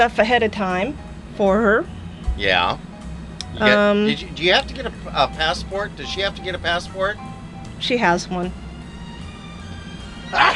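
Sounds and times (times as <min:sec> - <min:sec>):
speech: 0:00.0 - 0:02.9, 0:03.5 - 0:08.6
low steady hum: 0:00.0 - 0:10.5
sneeze: 0:10.4 - 0:10.5.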